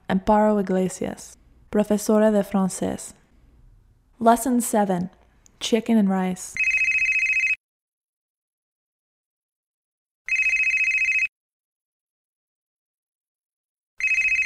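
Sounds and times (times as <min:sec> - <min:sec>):
speech: 0:00.1 - 0:03.2, 0:04.2 - 0:06.6
telephone ringing: 0:06.6 - 0:07.6, 0:10.3 - 0:11.3, 0:14.0 - 0:14.4.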